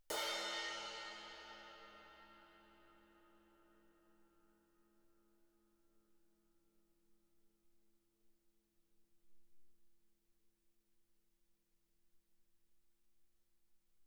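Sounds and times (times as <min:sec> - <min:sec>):
suspended cymbal crash struck with stick shoulder: 0:00.1 - 0:02.6.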